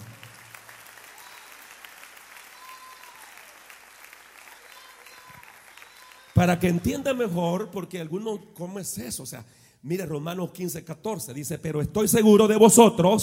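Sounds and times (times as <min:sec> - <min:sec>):
audience applause: 0:00.0 - 0:07.3
speech: 0:06.4 - 0:13.2.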